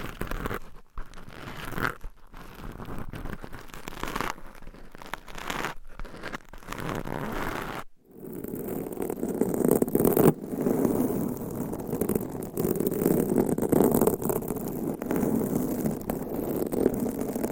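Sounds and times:
nails scratching over a microphone cover: 0.0 - 17.5.

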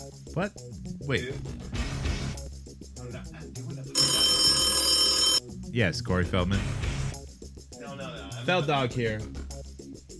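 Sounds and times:
speech: 0.4 - 1.8, 5.8 - 6.9, 8.4 - 9.4
telephone ringing with electronic tone: 4.0 - 5.4.

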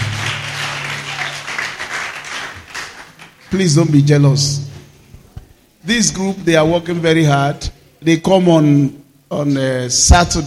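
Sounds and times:
audience applause for the choir: 0.0 - 3.5
speech: 3.5 - 4.6, 5.8 - 10.4.

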